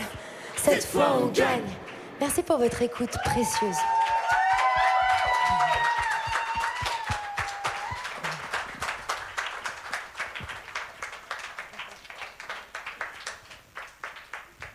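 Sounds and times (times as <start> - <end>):
crowd clapping: 0.5 - 14.7
speech: 0.7 - 4.1
voices cheering and whooping: 3.1 - 8.6.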